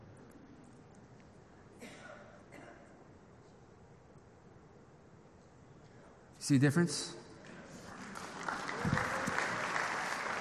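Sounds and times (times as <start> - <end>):
speech: 6.4 - 7.2
crowd clapping: 7.4 - 10.3.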